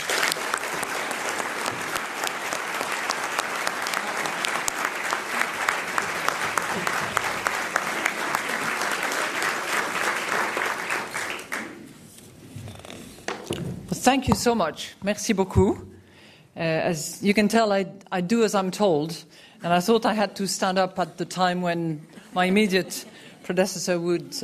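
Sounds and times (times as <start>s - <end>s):
audience applause welcoming IMF Managing Director Christine Lagarde at the National Press Club: 0.0s - 11.8s
speech: 14.1s - 15.9s, 16.6s - 24.4s.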